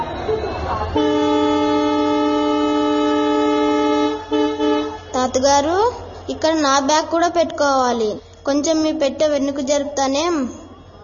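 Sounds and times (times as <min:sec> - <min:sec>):
speech: 0:00.9 - 0:01.2, 0:05.2 - 0:10.6
train horn blast: 0:00.9 - 0:05.4.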